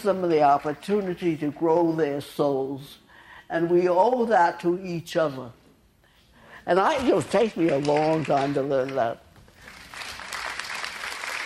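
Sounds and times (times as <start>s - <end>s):
speech: 0.0s - 5.6s, 6.6s - 9.2s
audience clapping: 7.0s - 11.4s.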